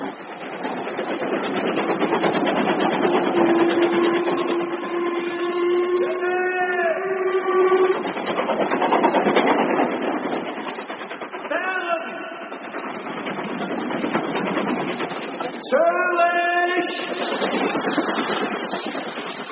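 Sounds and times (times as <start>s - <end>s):
steam train travelling with continuous rumbling roar: 0.0s - 19.5s
shorter wavering whistle or brake-squeal tones: 2.9s - 19.5s
long steady steam train whistle: 3.4s - 8.1s.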